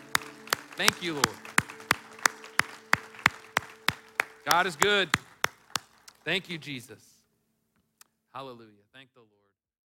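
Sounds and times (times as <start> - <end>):
audience applauding: 0.0 - 6.6
speech: 0.8 - 1.5, 4.5 - 5.2, 6.3 - 7.1, 8.4 - 9.3.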